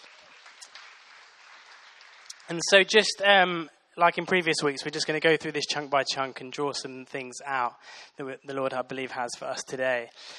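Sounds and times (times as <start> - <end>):
crowd applause: 0.0 - 2.7
speech: 2.5 - 10.3.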